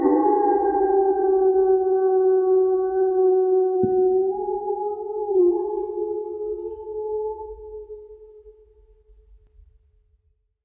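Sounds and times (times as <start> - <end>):
wolf: 0.0 - 8.1.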